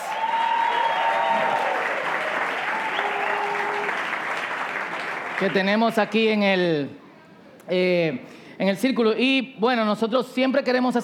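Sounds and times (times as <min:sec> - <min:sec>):
audience applause for actors: 0:00.0 - 0:05.9
speech: 0:05.4 - 0:07.0, 0:07.7 - 0:11.0.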